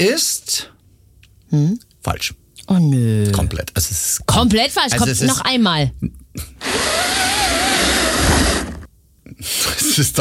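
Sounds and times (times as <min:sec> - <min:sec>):
speech: 0:00.0 - 0:00.7, 0:01.5 - 0:06.9, 0:09.3 - 0:10.1
pleated window blind being pulled up: 0:06.6 - 0:08.9.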